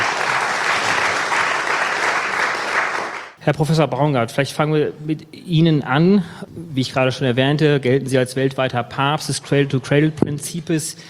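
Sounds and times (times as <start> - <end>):
audience applause welcoming guests to a panel discussion: 0.0 - 3.4
speech: 3.4 - 11.0.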